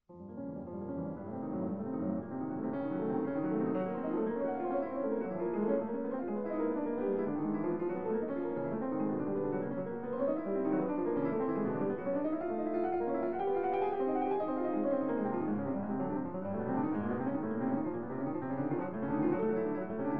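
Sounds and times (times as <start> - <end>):
piano sonata: 0.1 - 20.1.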